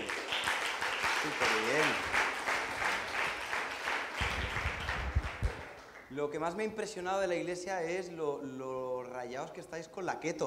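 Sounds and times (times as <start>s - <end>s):
audience applause: 0.0s - 6.1s
speech: 6.2s - 10.4s.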